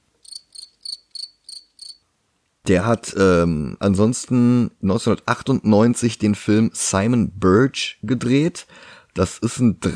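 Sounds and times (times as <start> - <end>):
cricket chirps: 0.2 - 2.0
speech: 2.7 - 9.9.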